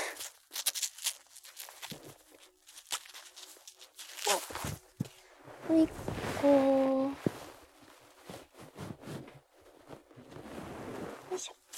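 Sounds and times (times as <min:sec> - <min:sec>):
wristband's Velcro strap being pressed and fastened: 0:00.1 - 0:04.8
speech: 0:05.7 - 0:06.8.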